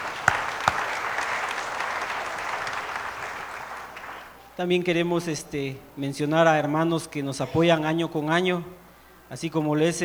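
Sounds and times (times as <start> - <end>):
audience applauding: 0.0 - 4.4
speech: 4.6 - 10.0.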